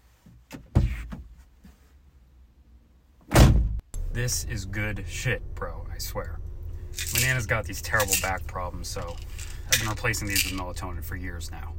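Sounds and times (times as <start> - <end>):
car door slamming: 3.3 - 3.8
speech: 4.2 - 11.7.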